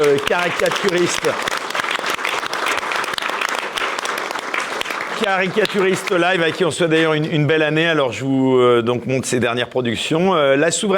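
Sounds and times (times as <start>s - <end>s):
speech: 0.0s - 1.7s, 5.2s - 10.9s
audience applause: 0.0s - 6.9s.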